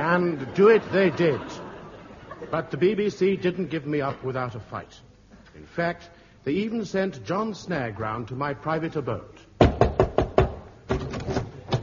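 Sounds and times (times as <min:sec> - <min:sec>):
speech: 0:00.2 - 0:01.7, 0:02.4 - 0:09.4
laughter: 0:00.2 - 0:03.0
knocking on a door as a radio comedy sound effect: 0:09.6 - 0:11.0.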